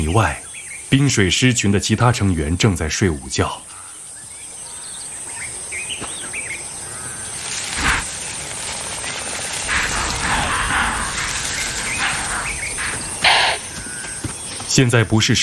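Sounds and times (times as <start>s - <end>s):
speech: 0.0s - 3.8s, 14.8s - 15.4s
wild noise: 0.0s - 15.4s
thin high chirps: 9.4s - 13.9s
impala alarm calls: 9.6s - 13.8s.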